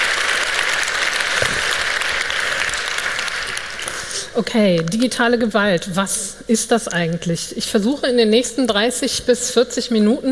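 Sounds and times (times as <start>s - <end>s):
audience applause: 0.0s - 4.3s
speech: 4.4s - 10.3s.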